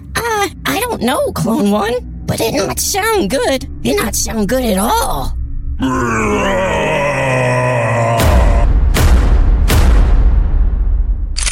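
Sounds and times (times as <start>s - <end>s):
speech: 0.4s - 7.0s
groaning scream with droning tones: 4.8s - 8.8s
loud booming blasts: 8.2s - 11.3s.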